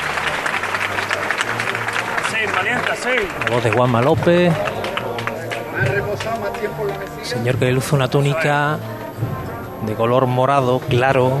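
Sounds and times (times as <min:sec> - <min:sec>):
crowd applause at street procession: 0:00.0 - 0:11.3
murmur of voices: 0:00.0 - 0:11.3
speech: 0:02.6 - 0:04.7, 0:06.2 - 0:11.3.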